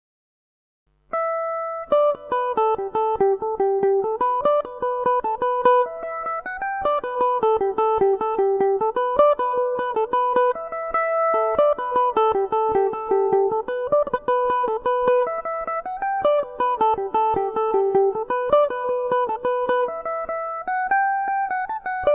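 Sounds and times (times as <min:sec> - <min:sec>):
Irish mandolin tune in G major: 0:01.1 - 0:22.1.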